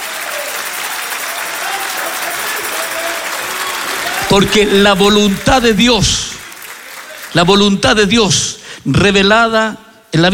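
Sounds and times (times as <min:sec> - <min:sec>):
audience applause: 0:00.0 - 0:07.8
speech: 0:04.3 - 0:06.2, 0:07.3 - 0:10.3.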